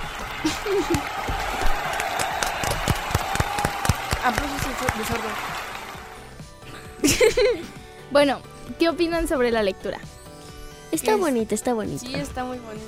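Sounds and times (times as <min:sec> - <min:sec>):
small audience clapping: 0:00.0 - 0:06.4
laughter: 0:00.3 - 0:01.9, 0:06.7 - 0:07.8
speech: 0:00.4 - 0:01.2, 0:04.2 - 0:05.6, 0:07.0 - 0:10.1, 0:10.9 - 0:12.8.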